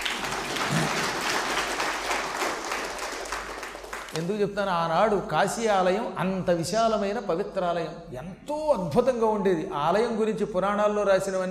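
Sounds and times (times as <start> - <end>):
audience applause at a speech: 0.0 - 4.2
speech: 4.2 - 11.4.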